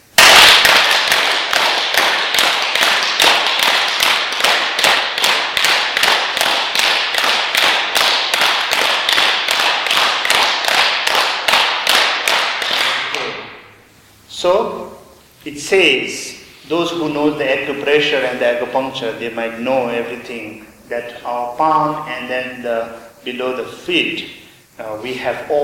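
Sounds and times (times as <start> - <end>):
hard hand clapping with hands above the head: 0.0 - 13.5
speech: 15.6 - 25.6.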